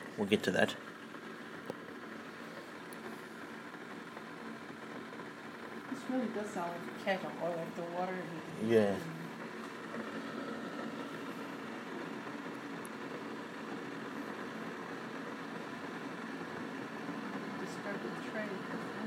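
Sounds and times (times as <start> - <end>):
machine heating water with kettle-like hiss: 0.0 - 19.0
speech: 0.2 - 1.0, 6.1 - 9.2.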